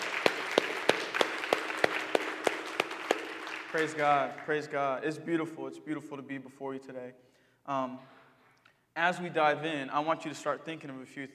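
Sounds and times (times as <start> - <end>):
audience applause: 0.0 - 4.6
speech: 3.7 - 8.2, 9.0 - 11.3.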